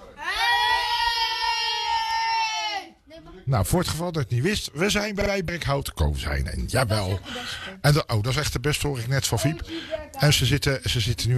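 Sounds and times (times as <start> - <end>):
group of children roaring loudly: 0.2 - 2.9
speech: 3.5 - 11.3.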